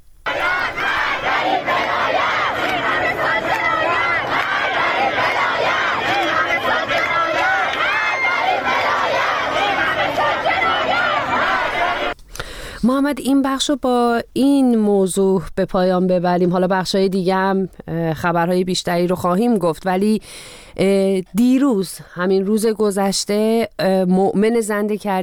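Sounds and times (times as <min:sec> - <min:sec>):
protesters chanting slogans for freedom: 0:00.3 - 0:12.2
speech: 0:12.9 - 0:25.2.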